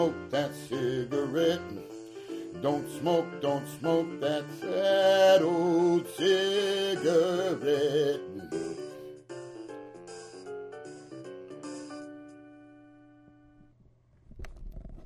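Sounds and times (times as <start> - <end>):
person singing: 0.0 - 9.0.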